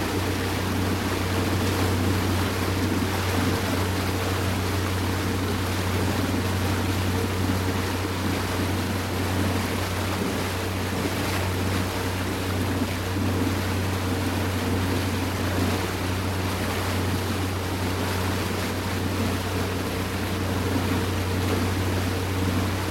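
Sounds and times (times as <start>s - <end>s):
marine inboard boat engine travelling slowly: 0.0s - 22.9s.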